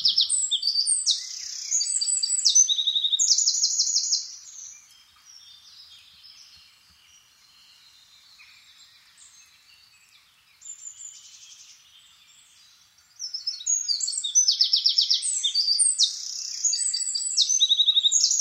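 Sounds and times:
Eurasian wren trilling calls: 0.0 - 4.7, 13.3 - 18.3.

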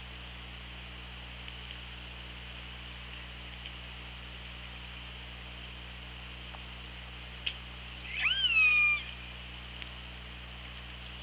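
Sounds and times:
low hum: 0.0 - 11.2
killer whale call: 8.1 - 9.2.

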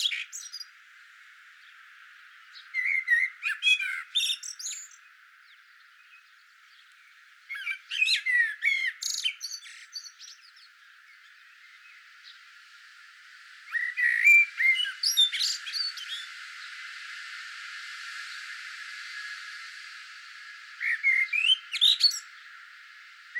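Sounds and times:
Eurasian blackbird singing: 0.0 - 0.8, 1.6 - 12.4, 13.7 - 16.7, 20.7 - 22.6
steady background hiss: 0.0 - 23.3.

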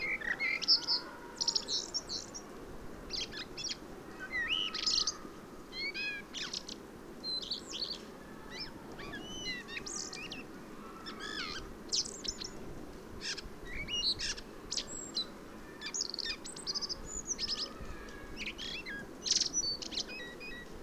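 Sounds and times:
common blackbird song: 0.0 - 2.5, 3.1 - 12.6, 13.2 - 20.8.

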